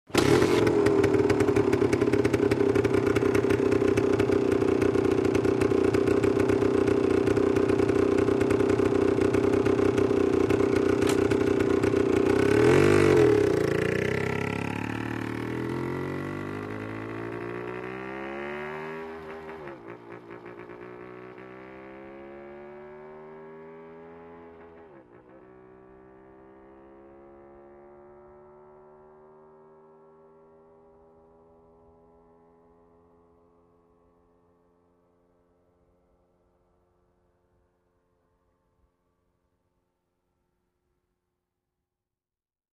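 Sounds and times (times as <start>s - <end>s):
motorcycle starting, idling and driving away: 0.1s - 32.6s.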